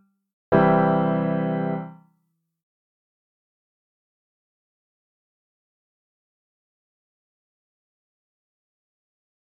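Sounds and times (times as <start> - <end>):
major and minor triads in root position: 0.5 - 1.9.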